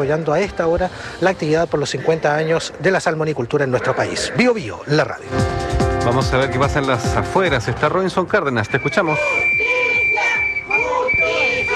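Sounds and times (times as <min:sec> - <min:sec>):
speech: 0:00.0 - 0:09.7
crowd of protesters shouting and chanting for justice: 0:08.6 - 0:11.7
steady high whistle-like tone: 0:08.6 - 0:11.7.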